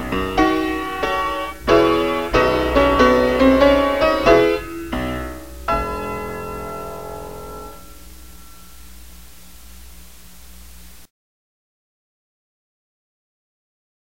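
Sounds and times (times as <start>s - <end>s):
piano: 0.0s - 11.1s.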